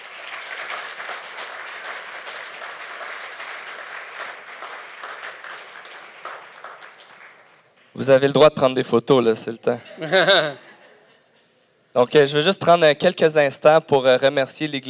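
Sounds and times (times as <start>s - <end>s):
audience applauding warmly: 0.0s - 7.9s
speech: 8.0s - 10.6s, 12.0s - 14.8s
laughter: 9.8s - 11.5s.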